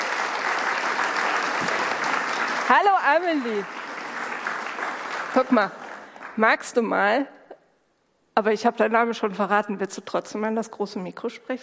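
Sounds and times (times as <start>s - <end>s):
group clapping for a young girl: 0.0s - 6.8s
speech: 2.7s - 3.8s, 5.3s - 5.8s, 6.4s - 7.4s, 8.4s - 11.6s.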